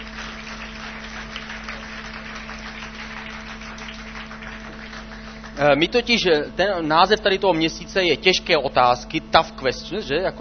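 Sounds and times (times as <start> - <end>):
audience applause welcoming guest: 0.0 - 5.8
faint low electrical hum: 0.0 - 10.3
speech: 5.6 - 10.3.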